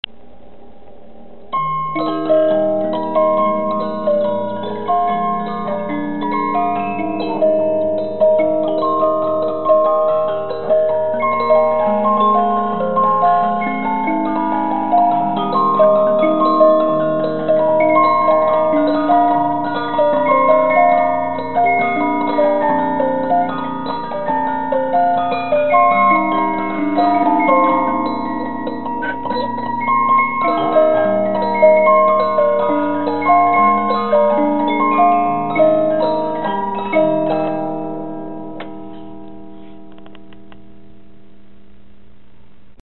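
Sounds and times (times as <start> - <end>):
music box: 1.4 - 41.0.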